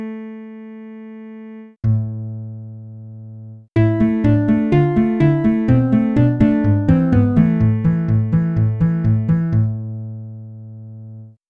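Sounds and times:
acoustic bass: 1.8 - 10.4.

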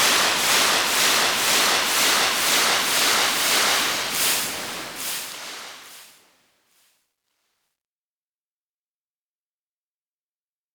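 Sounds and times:
sea waves on a shore: 0.0 - 6.0.

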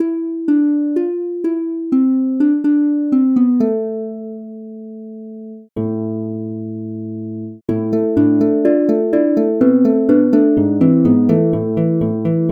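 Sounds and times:
harp: 0.0 - 4.9, 7.7 - 12.5.

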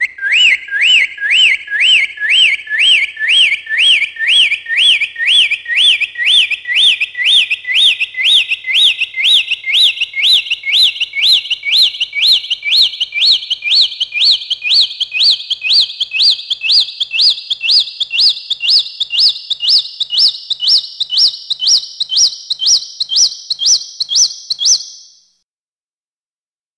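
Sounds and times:
bird tweet scale: 0.0 - 25.2.

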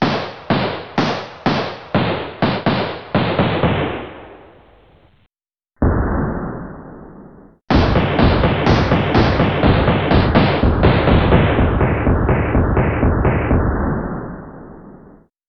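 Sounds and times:
gunshot: 0.0 - 4.6, 5.8 - 15.3.

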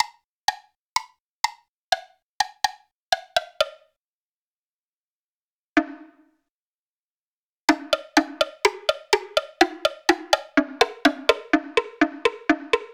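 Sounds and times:
woodblock: 0.0 - 4.0, 7.7 - 12.9.

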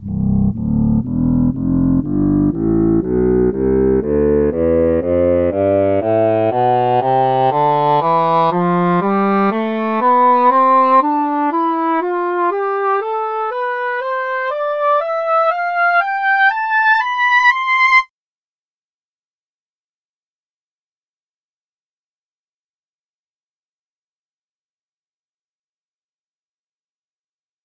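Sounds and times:
English horn playing a scale: 0.0 - 18.1.

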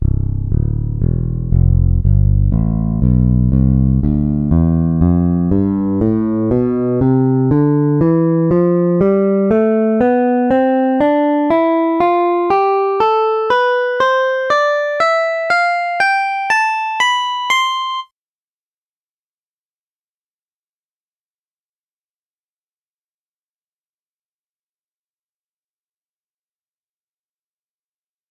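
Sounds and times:
fingered bass guitar scale: 0.0 - 18.0.

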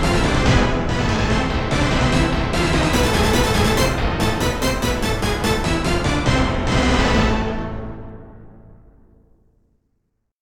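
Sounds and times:
orchestra hit: 0.0 - 8.2.

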